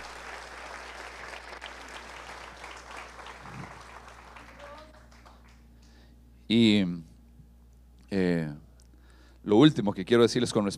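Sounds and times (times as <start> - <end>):
audience applause: 0.0 - 5.6
speech: 6.5 - 7.0, 8.1 - 8.6, 9.4 - 10.7.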